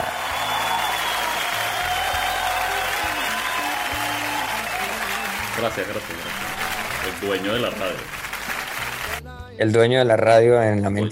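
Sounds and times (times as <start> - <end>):
audience applause: 0.0 - 9.2
speech: 5.6 - 8.2, 9.6 - 11.0.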